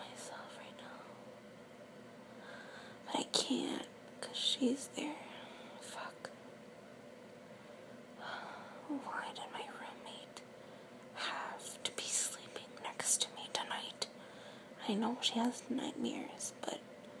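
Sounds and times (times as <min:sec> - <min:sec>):
whispers: 0:00.0 - 0:01.2, 0:03.1 - 0:06.4, 0:08.8 - 0:10.4, 0:11.2 - 0:14.1, 0:14.8 - 0:16.8.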